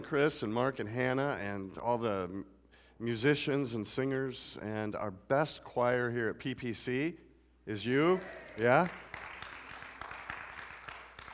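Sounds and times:
speech: 0.1 - 9.0
few people clapping: 8.0 - 11.3.

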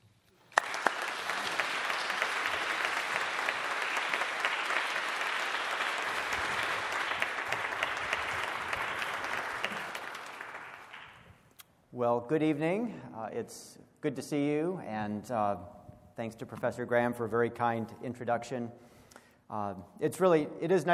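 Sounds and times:
audience applause welcoming a symposium evening speaker: 0.5 - 11.3
speech: 12.0 - 18.9, 19.5 - 20.9.

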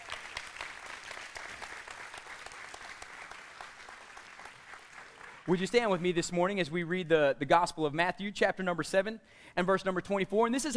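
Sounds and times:
audience applauding: 0.0 - 6.1
speech: 5.5 - 10.7.

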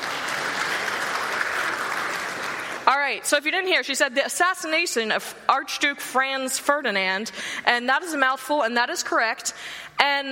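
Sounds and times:
applause: 0.0 - 2.9
speech: 3.1 - 10.3.

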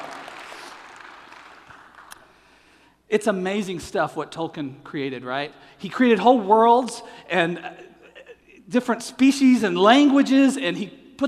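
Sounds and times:
small crowd clapping: 0.0 - 2.5
speech: 3.1 - 7.9, 8.7 - 11.2.

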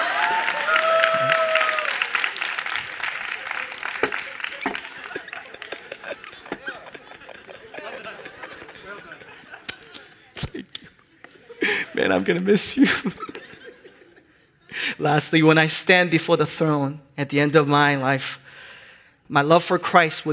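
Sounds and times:
audience applause: 0.0 - 9.7
laughter: 2.8 - 14.9
speech: 12.0 - 13.4, 15.0 - 18.4, 19.3 - 20.3.

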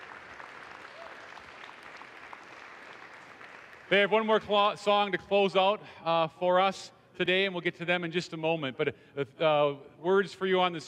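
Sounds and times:
audience applause for the band: 0.0 - 4.0
speech: 3.9 - 10.8.

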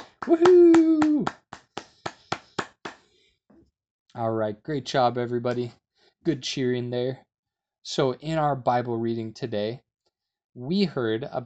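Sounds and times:
hand clapping: 0.0 - 3.1
speech: 0.2 - 1.4, 4.2 - 9.9, 10.6 - 11.4.

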